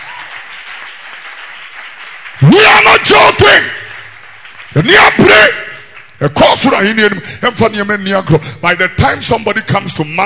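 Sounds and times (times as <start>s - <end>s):
audience clapping: 0.0s - 6.9s
speech: 2.4s - 3.8s, 4.8s - 5.6s, 6.2s - 10.2s.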